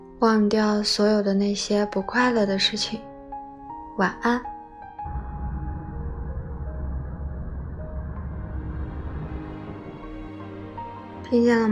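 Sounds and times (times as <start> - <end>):
speech: 0.2 - 3.1, 4.0 - 5.2, 11.3 - 11.7
airplane taking off: 5.0 - 11.1.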